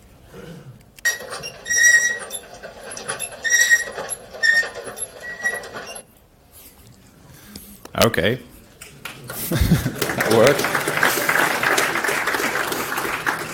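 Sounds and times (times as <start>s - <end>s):
escalator squeaking and grinding: 1.0s - 6.1s
speech: 8.0s - 8.5s, 10.4s - 10.7s
laughter: 9.3s - 13.5s.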